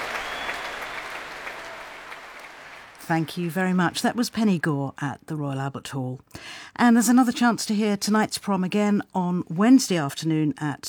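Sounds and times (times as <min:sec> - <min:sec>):
concert hall audience applause: 0:00.0 - 0:03.4
speech: 0:03.1 - 0:10.8.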